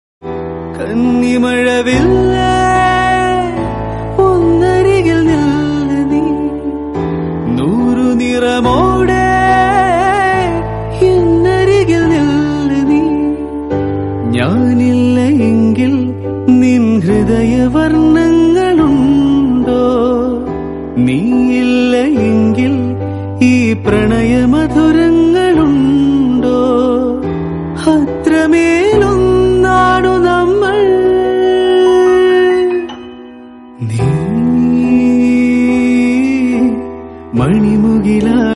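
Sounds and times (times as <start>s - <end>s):
Malayalam song: 0.2s - 38.5s.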